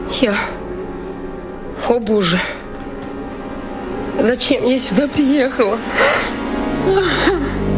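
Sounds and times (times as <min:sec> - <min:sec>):
speech: 0:00.1 - 0:00.6, 0:01.8 - 0:02.6, 0:04.2 - 0:07.6
woman crying: 0:05.8 - 0:07.6.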